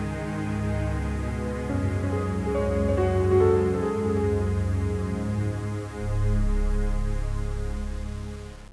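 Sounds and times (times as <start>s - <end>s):
game music: 0.1s - 8.4s.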